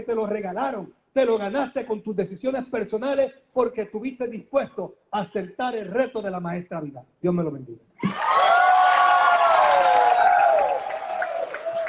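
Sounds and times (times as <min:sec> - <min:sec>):
speech: 0:00.0 - 0:08.4
crowd applause and cheering: 0:08.0 - 0:11.8.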